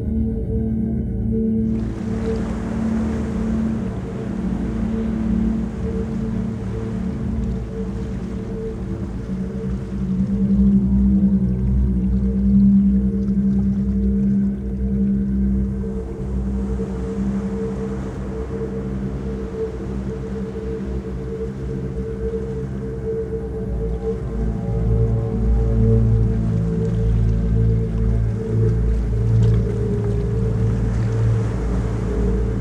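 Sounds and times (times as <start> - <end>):
ambient ocean: 0.0 - 32.6.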